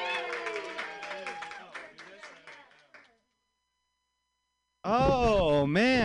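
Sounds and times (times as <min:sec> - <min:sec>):
audience applause: 0:00.0 - 0:03.1
speech: 0:04.9 - 0:06.0.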